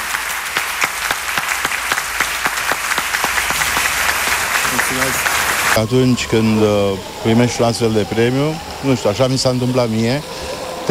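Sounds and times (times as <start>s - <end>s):
audience applause: 0.0s - 6.2s
speech: 5.8s - 10.8s.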